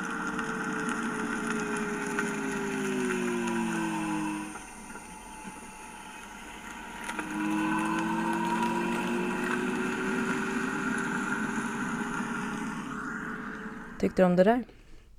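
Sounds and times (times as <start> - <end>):
typical electric car pedestrian warning sound: 0.1 - 15.1
speech: 14.0 - 14.7.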